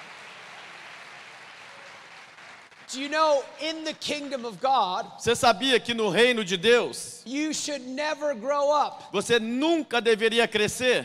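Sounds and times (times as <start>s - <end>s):
audience clapping: 0.0s - 5.0s
speech: 2.9s - 11.0s.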